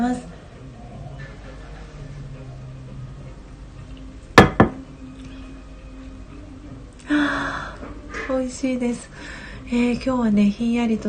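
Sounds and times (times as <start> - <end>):
ceramic coffee cup clinks: 4.4 - 4.8
speech: 8.5 - 11.0.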